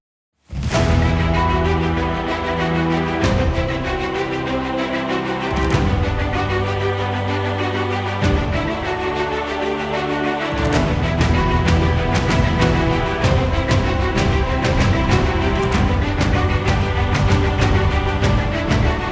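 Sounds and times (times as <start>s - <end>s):
epic cinematic music: 0.5s - 19.1s.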